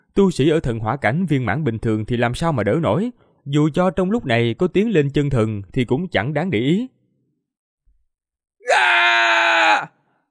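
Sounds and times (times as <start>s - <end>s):
speech: 0.2s - 7.0s
man screaming in agony: 8.6s - 10.0s.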